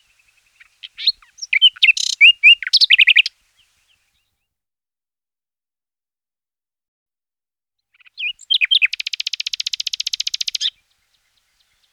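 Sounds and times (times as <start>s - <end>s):
bluethroat singing: 0.0s - 4.3s, 8.0s - 11.9s.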